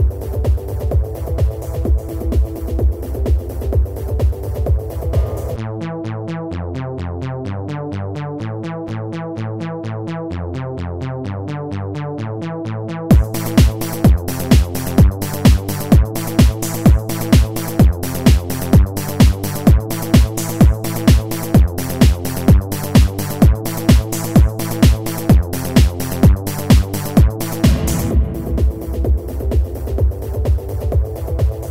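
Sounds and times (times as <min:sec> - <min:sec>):
disco music: 0:00.0 - 0:06.4, 0:13.1 - 0:31.6.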